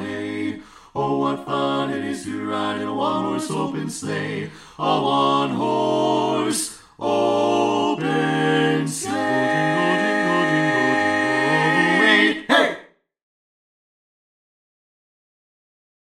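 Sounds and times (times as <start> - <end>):
Christmas song full mix: 0.0 - 12.8.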